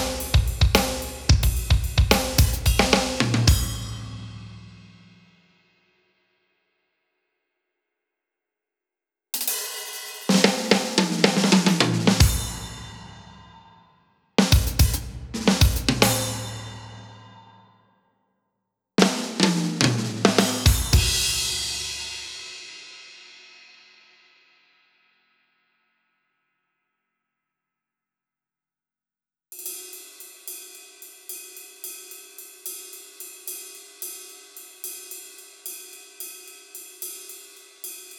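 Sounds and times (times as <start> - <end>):
drums at 110 BPM: 0.0 - 5.5, 9.4 - 13.8, 14.4 - 17.6, 19.0 - 24.7, 29.6 - 38.1.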